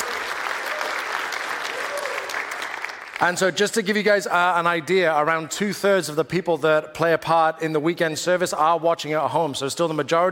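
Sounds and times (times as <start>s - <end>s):
church audience clapping: 0.0s - 3.9s
speech: 3.2s - 10.2s.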